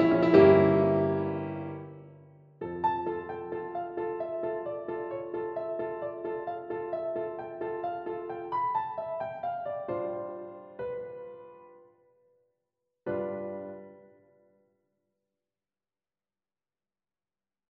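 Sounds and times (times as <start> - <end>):
instrumental music: 0.0 - 12.0.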